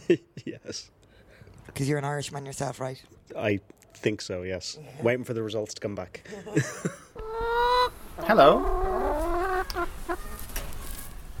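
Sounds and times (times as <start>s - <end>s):
speech: 0.1s - 1.0s, 1.8s - 7.6s, 8.2s - 8.9s
laughter: 6.2s - 7.2s
chickens clucking: 7.2s - 11.0s.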